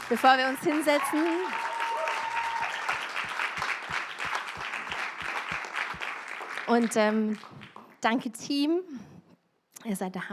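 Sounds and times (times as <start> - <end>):
crowd audience applause: 0.0 - 7.9
speech: 0.1 - 1.7, 6.7 - 9.1, 9.8 - 10.3.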